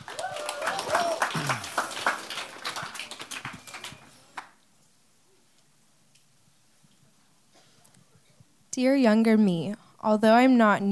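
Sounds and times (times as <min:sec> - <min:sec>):
audience clapping for a high school senior: 0:00.0 - 0:04.6
speech: 0:08.8 - 0:10.9.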